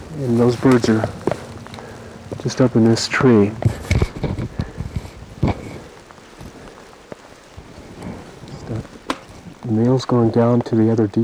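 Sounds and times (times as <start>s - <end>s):
strong rain falling: 0.0s - 11.2s
speech: 0.2s - 1.2s, 2.4s - 3.8s, 9.7s - 11.2s.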